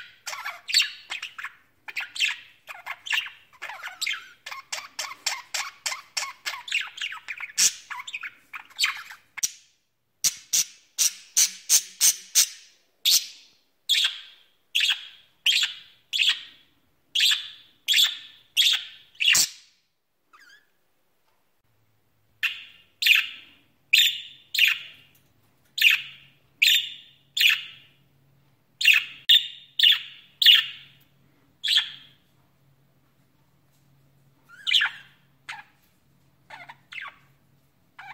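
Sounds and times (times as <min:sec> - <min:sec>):
budgerigar chirping: 0:00.0 - 0:09.6, 0:10.2 - 0:16.6, 0:17.2 - 0:19.7, 0:20.3 - 0:20.8, 0:22.4 - 0:25.1, 0:25.8 - 0:28.0, 0:28.8 - 0:31.0, 0:31.6 - 0:32.2, 0:34.5 - 0:35.8, 0:36.5 - 0:37.3.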